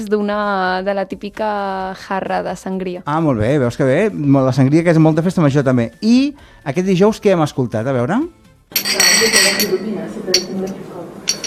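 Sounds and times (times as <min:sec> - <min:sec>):
speech: 0:00.0 - 0:11.0
glasses clinking together in a toast among friends: 0:08.7 - 0:11.4.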